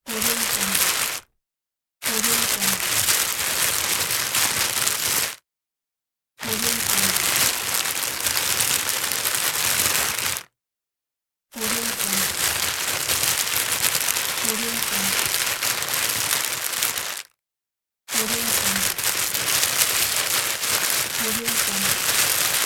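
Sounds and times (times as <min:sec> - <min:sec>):
plastic bag rustling: 0:00.1 - 0:01.3, 0:02.0 - 0:05.4, 0:06.4 - 0:10.5, 0:11.6 - 0:17.3, 0:18.1 - 0:22.6.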